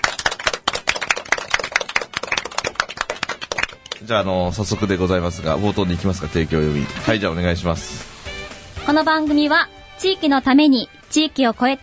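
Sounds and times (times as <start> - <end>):
brisk applause from a small group: 0.0 - 4.1
speech: 4.0 - 8.1, 8.9 - 11.8.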